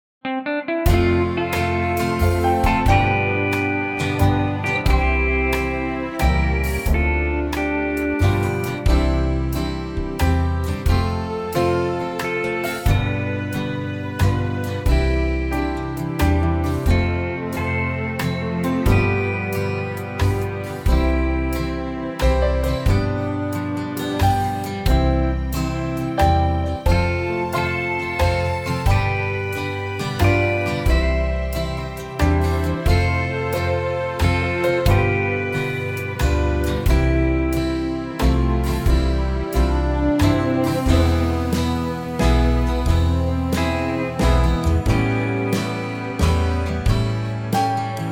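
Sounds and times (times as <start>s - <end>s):
waltz in C: 0.9s - 48.0s.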